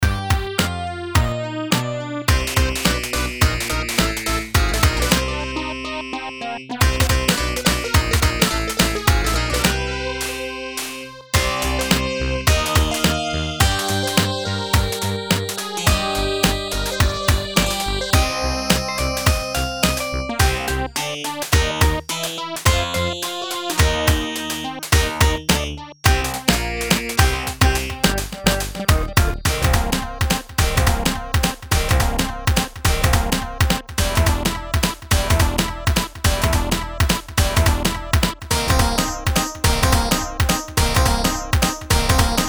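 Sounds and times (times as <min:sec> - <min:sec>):
galactic funk music: 0:00.0 - 0:42.4.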